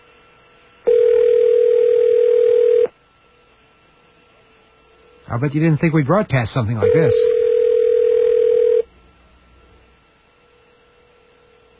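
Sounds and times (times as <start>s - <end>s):
phone ringing: 0.9s - 2.9s, 6.8s - 8.8s
speech: 5.3s - 7.4s.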